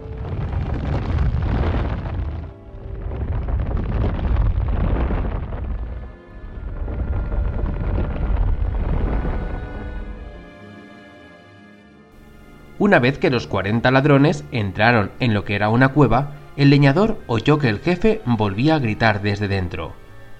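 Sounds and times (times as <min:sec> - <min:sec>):
rock splitting open: 0:00.0 - 0:10.1
speech: 0:12.8 - 0:20.0.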